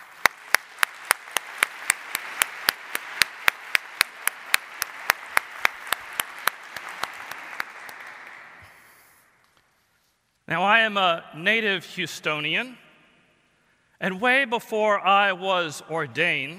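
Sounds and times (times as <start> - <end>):
one sharp clapper keeping a steady even rhythm: 0.0 - 8.9
audience applause: 0.0 - 9.0
speech: 10.5 - 12.8, 14.0 - 16.5.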